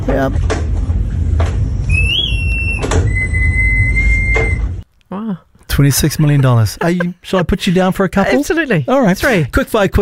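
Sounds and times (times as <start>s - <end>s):
speech: 0.0s - 0.7s, 5.3s - 10.0s
wind-up mechanical singing bird whistling: 1.9s - 4.8s.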